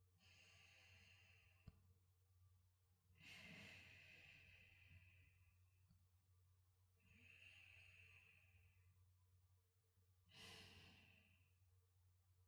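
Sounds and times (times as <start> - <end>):
sleeping breath: 0.2 - 1.6, 3.2 - 5.6, 7.0 - 8.9, 10.3 - 11.6.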